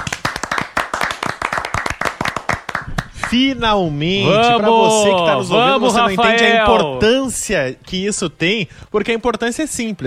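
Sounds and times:
round of applause: 0.0 - 3.4
speech: 3.3 - 10.0.

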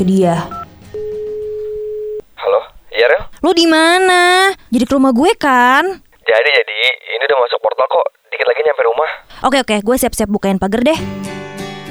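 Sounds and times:
speech: 0.0 - 0.6, 3.0 - 11.3
faint noise: 0.0 - 11.8
phone ringback tone: 0.5 - 2.2.

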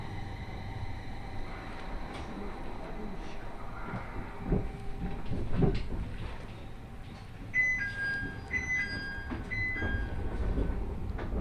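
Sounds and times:
701 series train carriage rumbling toward Kitakami: 0.0 - 11.3
bright electronic chime tones: 7.6 - 10.2.

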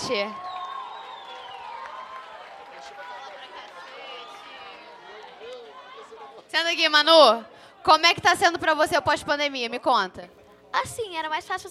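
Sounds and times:
audience applause: 0.0 - 6.5
lively crowd cheering and chattering: 0.0 - 10.9
speech: 0.1 - 0.5, 6.5 - 11.6.

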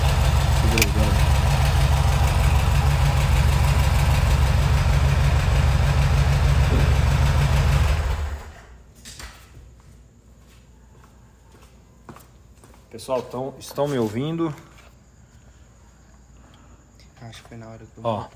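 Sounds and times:
Volkswagen Beetle engine idling: 0.0 - 8.6
speech: 13.0 - 14.7, 17.2 - 18.3.

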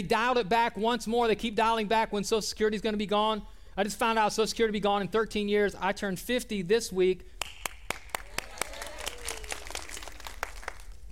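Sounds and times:
speech: 0.0 - 7.3
audience applause: 7.9 - 11.1.

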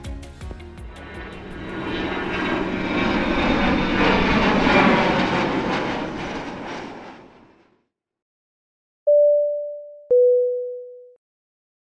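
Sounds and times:
airplane takeoff jet engine roar sound effect: 0.9 - 7.7
two-tone cabin chime: 9.1 - 11.2.

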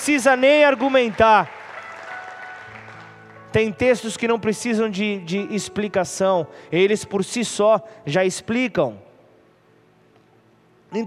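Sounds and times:
speech: 0.0 - 1.6, 3.6 - 9.1
audience applause: 0.0 - 3.5.

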